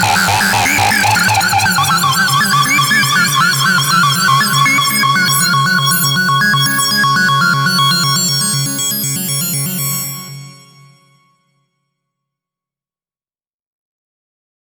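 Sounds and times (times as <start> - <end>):
Sequential Pro 3 synthesizer: 0.0 - 11.4.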